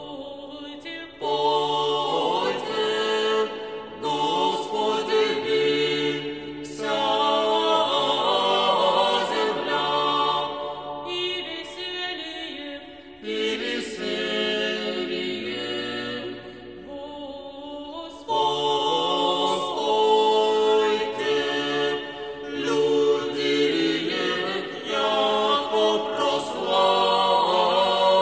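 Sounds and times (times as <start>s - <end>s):
Russian spiritual music: 0.0s - 28.2s.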